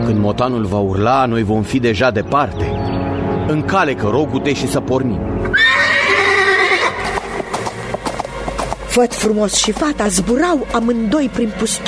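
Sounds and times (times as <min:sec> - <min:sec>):
speech: 0:00.1 - 0:05.7, 0:09.0 - 0:11.8
horse neighing: 0:05.4 - 0:08.6.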